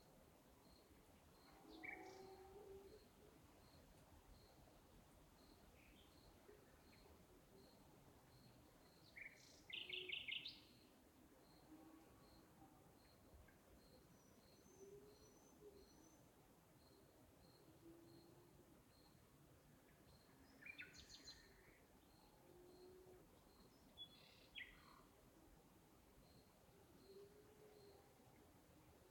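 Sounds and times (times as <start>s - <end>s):
night birds in the countryside: 0.0s - 29.0s
cricket: 0.6s - 4.7s, 5.3s - 9.6s, 11.4s - 16.1s, 16.7s - 19.2s, 26.1s - 28.2s.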